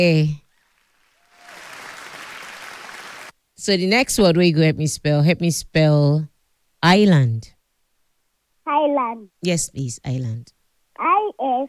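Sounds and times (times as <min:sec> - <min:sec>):
speech: 0:00.0 - 0:00.4, 0:03.6 - 0:07.6, 0:08.7 - 0:11.6
class of pupils applauding a classmate during a spelling lesson: 0:00.8 - 0:03.3.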